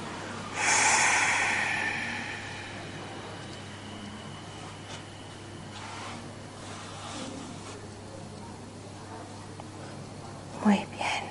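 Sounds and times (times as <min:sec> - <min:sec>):
long exhale during a guided meditation: 0:00.5 - 0:05.0.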